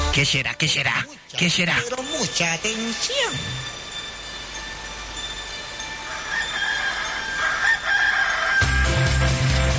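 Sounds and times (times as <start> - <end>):
speech: 0.2 - 3.7
roosters crowing: 5.1 - 9.6.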